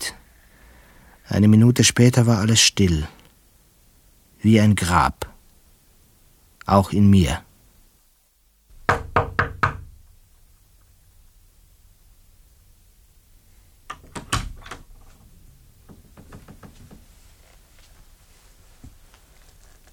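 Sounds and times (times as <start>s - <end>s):
steady low hiss: 0.0s - 19.9s
speech: 1.3s - 3.2s, 4.4s - 5.3s, 6.7s - 7.5s
knocking on a door: 8.8s - 10.0s, 15.9s - 17.1s.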